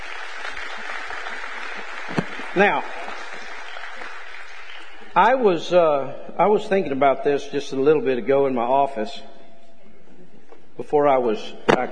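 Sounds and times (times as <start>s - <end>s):
audience clapping hands: 0.0s - 5.2s
speech: 2.1s - 3.0s, 5.2s - 9.3s, 10.8s - 11.9s.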